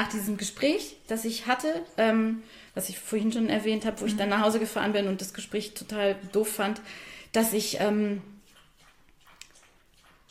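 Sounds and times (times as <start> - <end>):
speech: 0.0 - 8.3
dog lapping drinking water: 7.4 - 10.2.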